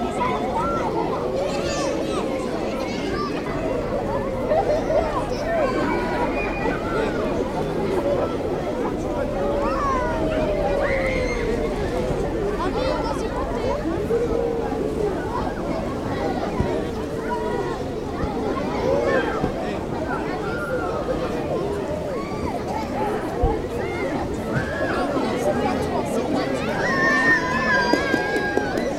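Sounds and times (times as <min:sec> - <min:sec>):
children playing at a lake beach: 0:00.0 - 0:28.9
people chattering at a lake beach: 0:00.0 - 0:28.9
people swimming in a lake: 0:00.0 - 0:28.9.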